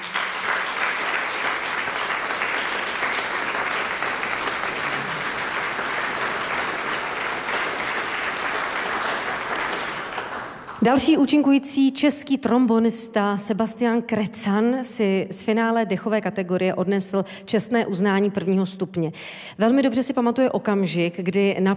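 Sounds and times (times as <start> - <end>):
audience applause: 0.0 - 10.8
speech: 10.8 - 21.7.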